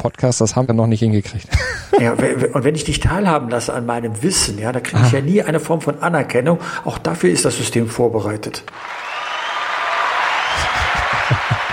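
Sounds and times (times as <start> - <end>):
speech: 0.0 - 9.1
laughter: 1.5 - 2.6, 10.3 - 11.7
applause: 8.7 - 11.7.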